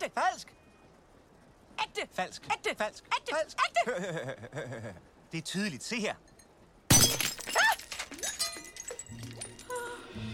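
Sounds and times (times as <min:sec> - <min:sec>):
speech: 0:00.0 - 0:00.6, 0:01.8 - 0:06.3
fake glass ruby being smashed: 0:06.9 - 0:09.8.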